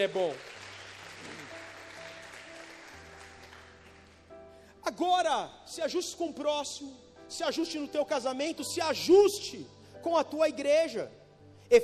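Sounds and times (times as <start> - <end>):
speech: 0.0 - 0.5, 4.9 - 11.8
crowd clapping: 0.0 - 4.4.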